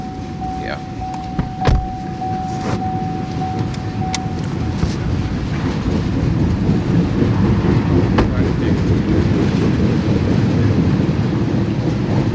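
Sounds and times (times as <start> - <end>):
brief horn-like tone of freight train: 0.0 - 5.6
freight train of oil cars rumbling past on the tracks: 0.0 - 12.3.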